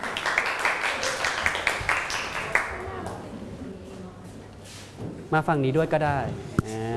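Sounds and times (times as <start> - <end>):
group clapping: 0.0 - 3.2
speech: 5.3 - 6.8.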